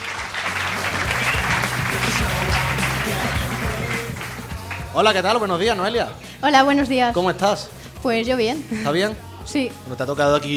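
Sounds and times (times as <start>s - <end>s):
audience applause: 0.0s - 5.2s
speech: 5.0s - 10.5s.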